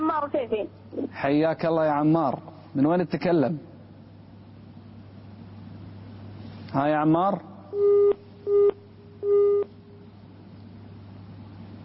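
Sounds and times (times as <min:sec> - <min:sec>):
speech: 0:00.3 - 0:03.7, 0:06.7 - 0:09.5
phone busy tone beeps after a cut-off call: 0:07.7 - 0:09.7.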